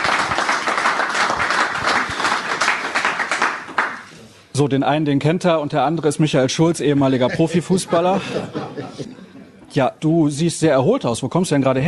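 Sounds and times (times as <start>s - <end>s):
audience applause: 0.0s - 4.1s
speech: 4.6s - 9.2s, 9.8s - 11.8s
laughter: 6.9s - 9.7s.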